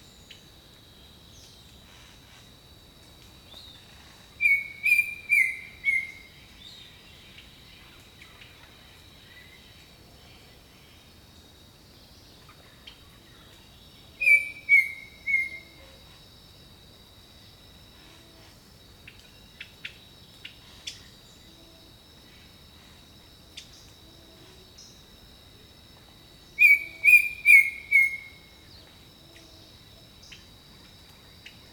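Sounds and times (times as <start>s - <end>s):
insect whine: 0.0s - 31.7s
bird whistling: 4.4s - 6.2s, 14.2s - 15.7s, 26.6s - 28.4s.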